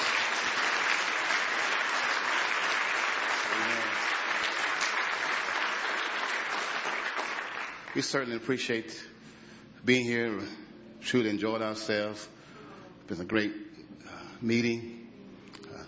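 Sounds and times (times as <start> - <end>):
audience clapping hands in praise: 0.0 - 8.4
speech: 8.0 - 9.1, 9.8 - 12.4, 13.1 - 13.6, 14.4 - 15.0.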